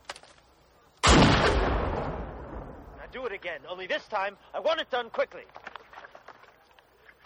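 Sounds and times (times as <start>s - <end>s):
single gunshot from a discharged weapon: 1.0s - 3.1s
speech: 3.2s - 5.6s.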